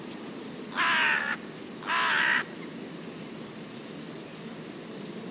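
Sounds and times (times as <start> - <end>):
bird cawing: 0.7 - 2.6.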